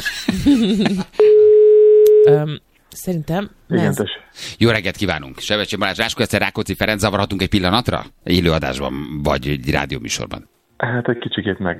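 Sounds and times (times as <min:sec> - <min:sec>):
laughter: 0:00.0 - 0:01.2
speech: 0:00.0 - 0:01.3, 0:02.2 - 0:11.7
telephone line tone: 0:01.2 - 0:02.4.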